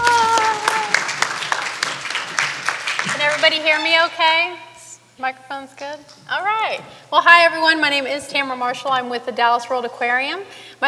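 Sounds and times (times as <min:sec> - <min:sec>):
audience applause: 0:00.0 - 0:03.8
speech: 0:03.4 - 0:10.8.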